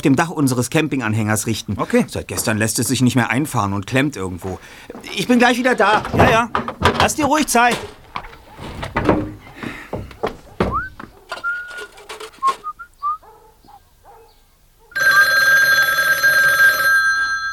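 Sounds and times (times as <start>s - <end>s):
speech: 0.0s - 8.0s
whistle-like gliding tones: 10.7s - 13.2s
telephone bell ringing: 15.0s - 17.5s.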